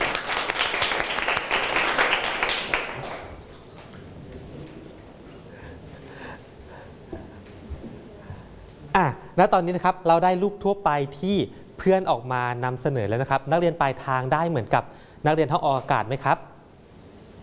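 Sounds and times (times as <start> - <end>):
classroom applause: 0.0 - 3.5
speech: 9.4 - 16.5.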